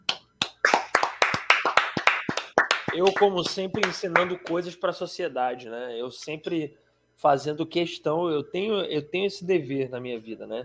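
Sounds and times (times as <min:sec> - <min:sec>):
clapping hands applause: 0:00.0 - 0:04.7
speech: 0:02.9 - 0:10.6.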